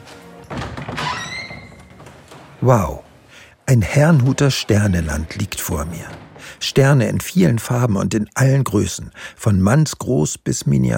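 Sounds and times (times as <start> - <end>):
exhibition room door opening with a soft thunk: 0.0 - 7.7
speech: 2.6 - 3.0, 3.7 - 10.9.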